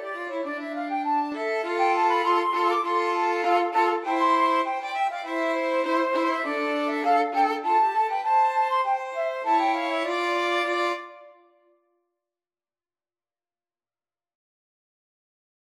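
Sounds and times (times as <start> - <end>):
cello: 0.0 - 11.3
violin: 0.0 - 11.5
flute: 0.0 - 11.7.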